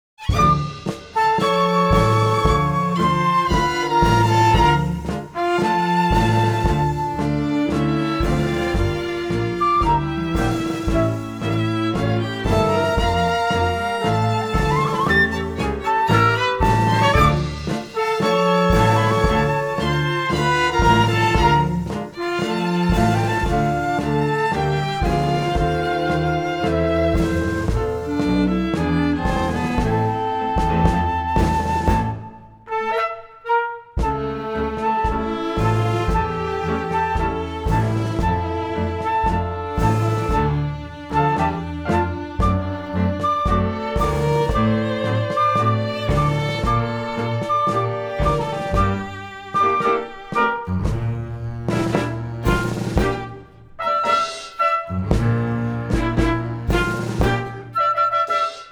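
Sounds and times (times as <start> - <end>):
tango music: 0.0 - 58.7.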